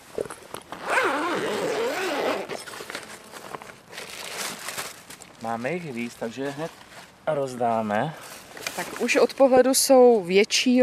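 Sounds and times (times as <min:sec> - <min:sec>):
rustling and crinkling of bag contents being unpacked: 0:00.0 - 0:10.3
bag zipper opening: 0:00.7 - 0:02.9
speech: 0:05.5 - 0:08.2, 0:08.8 - 0:10.8.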